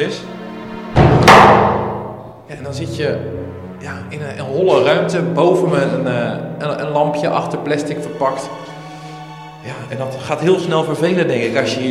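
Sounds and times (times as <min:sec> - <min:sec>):
speech: 0:00.0 - 0:00.4, 0:02.5 - 0:08.7, 0:09.6 - 0:11.8
heavy holding cell door slamming shut: 0:00.9 - 0:02.3.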